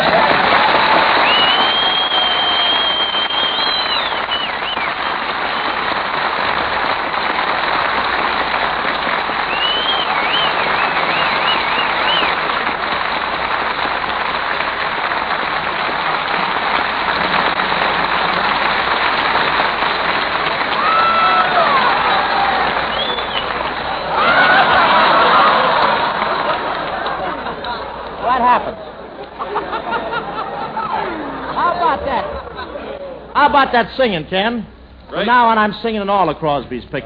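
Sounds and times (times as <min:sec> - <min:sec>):
audience clapping: 0:00.0 - 0:31.9
audience shrill whistles: 0:01.2 - 0:05.2, 0:09.5 - 0:12.4, 0:22.9 - 0:23.6
audience shouts: 0:20.7 - 0:26.6
laughter: 0:24.1 - 0:33.2
speech: 0:33.7 - 0:37.0.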